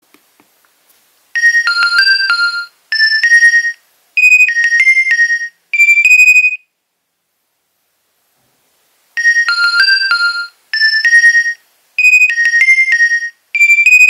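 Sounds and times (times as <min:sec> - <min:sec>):
Nokia 2300 ringtones: 0:01.4 - 0:06.6, 0:09.2 - 0:14.0.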